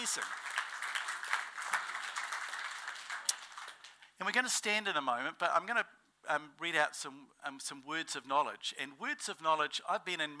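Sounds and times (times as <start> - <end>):
crowd clapping: 0.0 - 4.1
speech: 0.2 - 0.4, 4.2 - 10.3.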